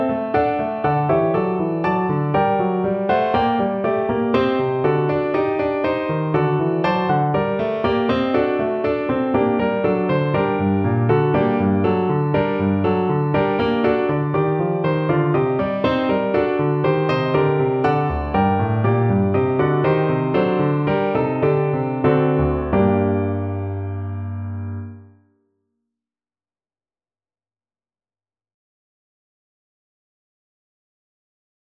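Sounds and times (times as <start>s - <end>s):
fast piano: 0.0s - 25.2s.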